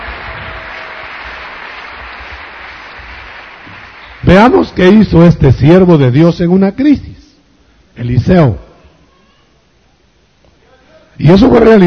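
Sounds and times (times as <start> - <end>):
congregation applauding during a church sermon: 0.0 - 5.3
speech: 4.3 - 7.1, 8.0 - 8.6, 11.2 - 11.8.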